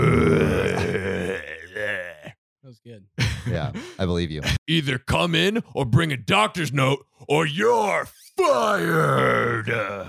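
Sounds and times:
man growling angrily: 0.0s - 2.4s, 8.8s - 10.0s
speech: 3.0s - 10.0s.

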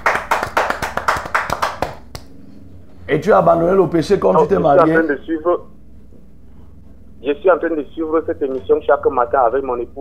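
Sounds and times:
people clapping during a church worship broadcast: 0.0s - 2.3s
speech: 3.1s - 5.7s, 7.2s - 9.9s.

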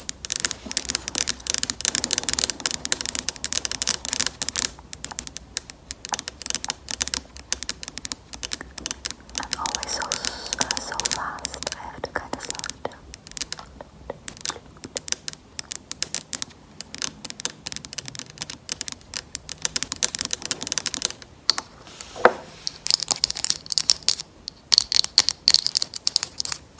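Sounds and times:
acrylic nails tapping: 0.0s - 26.7s
faint low hum: 0.0s - 26.7s
soft scraping: 21.7s - 22.8s.

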